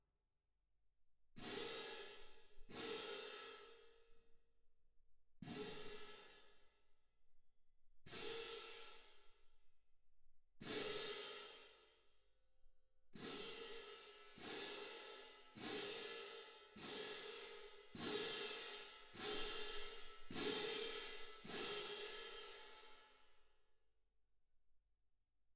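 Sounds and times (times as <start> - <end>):
percussion: 1.4 - 3.9, 5.4 - 6.6, 10.6 - 11.8, 13.2 - 23.2.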